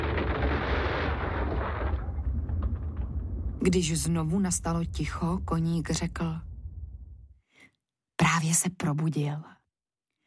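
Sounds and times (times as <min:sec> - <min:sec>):
deep rumbling roar: 0:00.0 - 0:07.3
speech: 0:03.6 - 0:06.5, 0:08.2 - 0:09.6.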